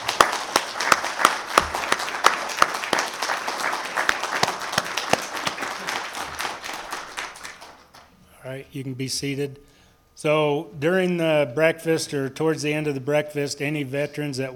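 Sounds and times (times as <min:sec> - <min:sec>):
round of applause for veterans: 0:00.0 - 0:08.1
speech: 0:08.5 - 0:14.5.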